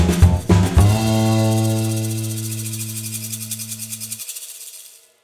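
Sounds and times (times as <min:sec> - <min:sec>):
music stings: 0:00.1 - 0:03.9.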